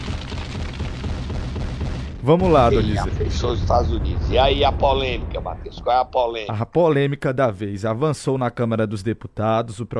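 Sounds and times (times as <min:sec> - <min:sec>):
MOAB bomb explosion sound effect deep rumble: 0:00.0 - 0:06.6
speech: 0:02.3 - 0:09.9.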